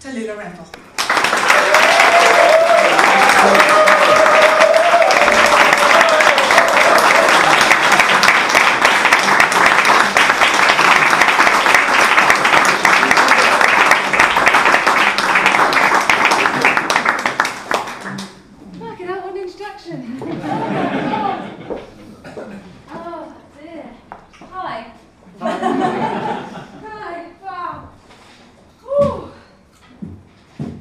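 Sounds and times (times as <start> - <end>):
speech: 0.0 - 1.9
audience applauding to welcome a storyteller and hostess onto the stage: 0.9 - 18.4
laughter: 20.1 - 22.5, 25.4 - 26.9.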